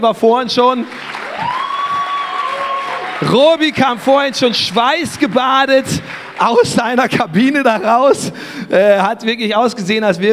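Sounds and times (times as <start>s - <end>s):
speech: 0.0s - 1.6s, 3.2s - 10.3s
audience applause for the band: 0.8s - 8.3s.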